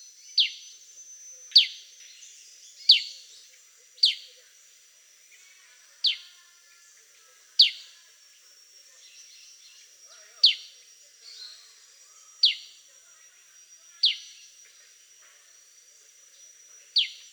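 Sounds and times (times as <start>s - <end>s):
sooty-headed bulbul singing: 0.0s - 17.3s.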